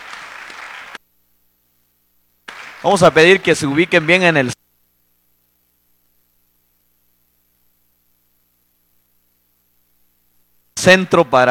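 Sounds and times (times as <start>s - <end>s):
applause for children: 0.0s - 1.0s, 2.4s - 4.6s
speech: 2.8s - 4.6s, 10.8s - 11.5s.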